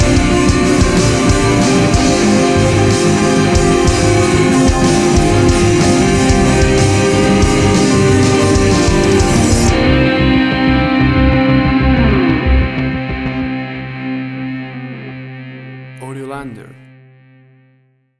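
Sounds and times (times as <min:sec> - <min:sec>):
action hybrid dramatic trailer music: 0:00.0 - 0:13.2.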